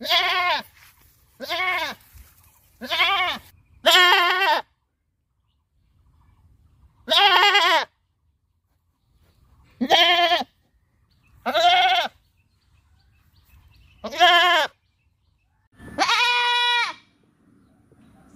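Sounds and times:
happy goat bleating: 0.0 - 0.8, 1.4 - 2.1, 2.8 - 4.7, 7.0 - 8.0, 9.8 - 10.6, 11.4 - 12.2, 13.9 - 14.8, 15.9 - 17.1.

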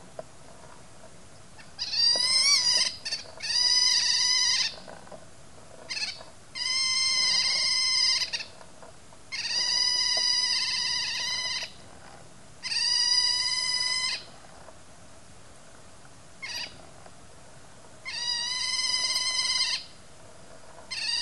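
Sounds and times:
otter calling: 1.6 - 4.9, 5.9 - 8.6, 9.3 - 11.8, 12.6 - 14.4, 16.4 - 16.9, 18.0 - 20.0, 20.9 - 21.1.

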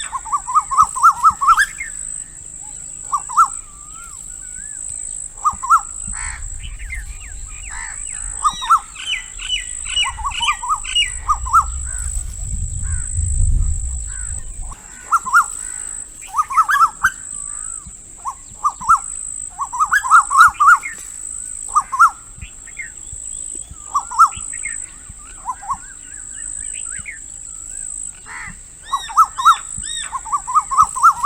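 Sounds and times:
bird calls: 0.0 - 31.2.

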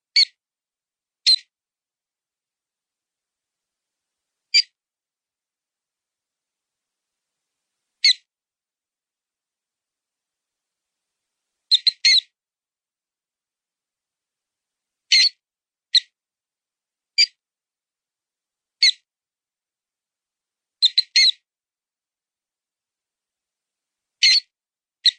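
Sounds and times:
mouse sound: 0.1 - 0.4, 1.2 - 1.5, 4.5 - 4.8, 8.0 - 8.3, 11.7 - 12.3, 15.1 - 16.2, 17.2 - 17.4, 18.8 - 19.1, 20.8 - 21.4, 24.2 - 25.1.

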